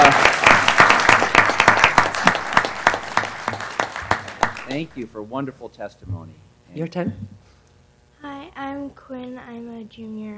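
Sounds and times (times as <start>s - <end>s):
applause at a Portland city council meeting for Girl Scouts: 0.0s - 5.1s
speech: 4.8s - 7.4s, 8.2s - 10.3s.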